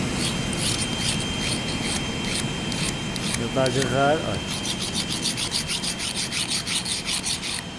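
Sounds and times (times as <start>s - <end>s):
hand file rasping across a workpiece with a soft layer: 0.2s - 7.6s
speech: 3.6s - 4.6s.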